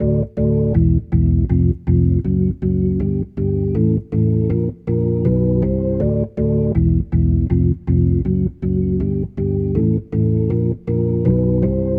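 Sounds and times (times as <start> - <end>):
rotor organ riff: 0.0 - 11.9.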